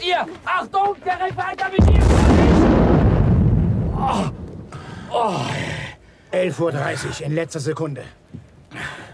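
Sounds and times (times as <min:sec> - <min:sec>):
speech: 0:00.1 - 0:02.6, 0:05.2 - 0:08.9
deep loud explosion rumble: 0:01.8 - 0:05.1
person gasping or groaning: 0:04.0 - 0:06.0.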